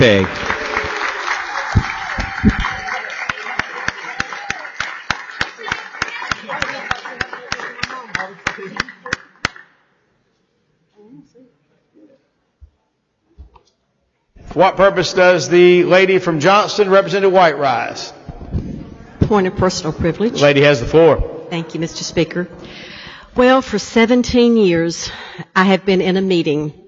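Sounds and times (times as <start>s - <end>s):
speech: 0.0s - 0.5s, 1.7s - 2.6s, 14.6s - 18.2s, 19.3s - 26.8s
audience applause: 0.0s - 9.6s.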